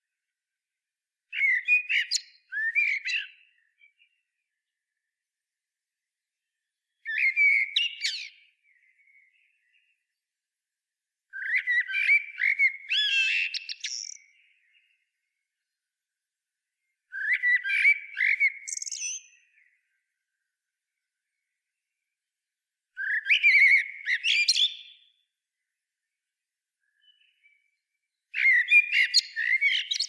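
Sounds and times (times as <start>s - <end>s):
Eurasian blackbird singing: 1.3s - 4.2s, 7.0s - 9.9s, 11.3s - 15.0s, 17.1s - 19.8s, 23.0s - 25.2s, 26.8s - 27.8s, 28.4s - 30.0s.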